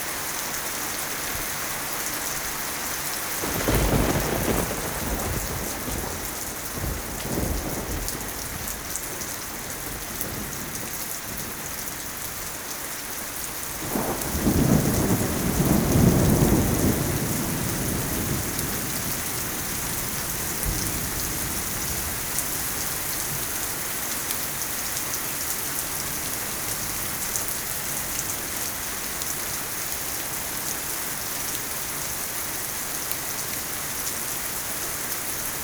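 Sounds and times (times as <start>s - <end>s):
rain: 0.0s - 35.6s
thunder: 3.4s - 11.6s, 13.8s - 22.4s.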